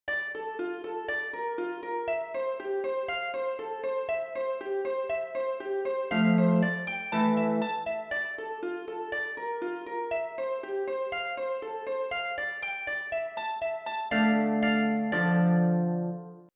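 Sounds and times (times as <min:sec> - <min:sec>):
harp: 0:00.1 - 0:16.5.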